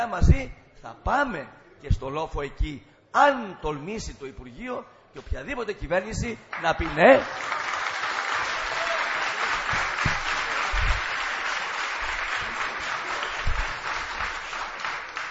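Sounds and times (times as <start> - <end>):
speech: 0.0 - 7.7
audience applause: 6.8 - 15.2.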